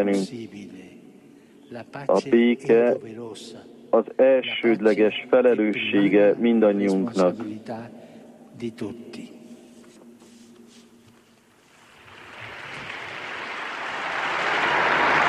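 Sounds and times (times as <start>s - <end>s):
speech: 0.0s - 0.8s, 1.7s - 8.0s, 8.6s - 9.3s
large crowd applause in a square: 11.9s - 15.2s.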